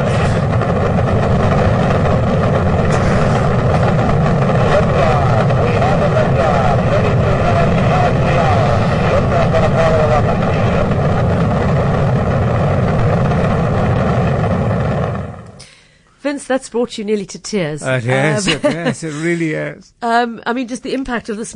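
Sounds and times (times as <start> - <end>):
rocket engines roaring at liftoff: 0.0 - 15.8
speech: 16.5 - 21.5
laughter: 18.0 - 19.6.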